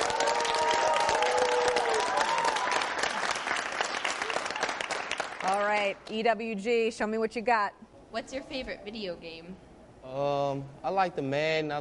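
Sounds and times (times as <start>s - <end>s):
audience applause: 0.0s - 5.8s
people cheering: 0.0s - 5.8s
speech: 5.8s - 11.8s.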